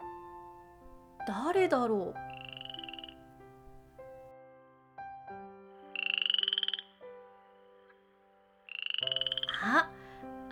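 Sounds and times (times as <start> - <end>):
speech: 1.3 - 2.3
frog croaking: 2.2 - 3.9, 5.9 - 7.0, 8.6 - 10.0.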